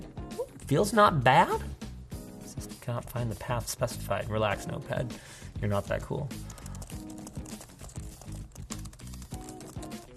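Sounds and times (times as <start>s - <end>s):
speech: 0.7s - 1.7s, 2.9s - 6.6s
typing on a computer keyboard with stiff keys in Notepad: 6.4s - 10.1s.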